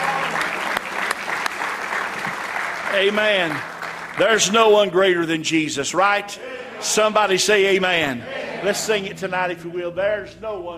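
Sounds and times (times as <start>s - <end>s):
audience hand clapping: 0.0s - 5.0s
speech: 3.0s - 10.7s.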